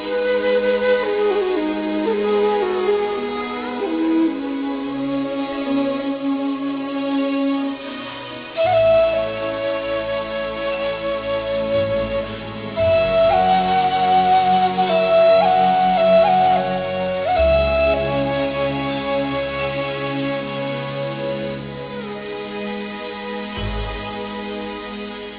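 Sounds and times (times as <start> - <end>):
Chinese music: 0.0 - 25.3.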